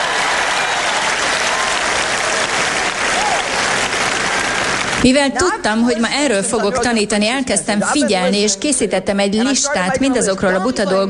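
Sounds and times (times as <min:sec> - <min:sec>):
audience applauding: 0:00.0 - 0:05.4
speech: 0:05.0 - 0:11.0.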